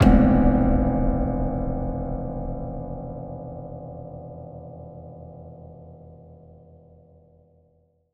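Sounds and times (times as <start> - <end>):
impact: 0.0 - 4.9.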